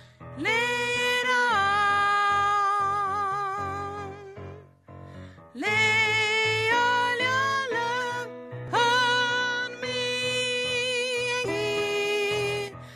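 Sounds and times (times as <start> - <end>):
bass: 0.0 - 12.9.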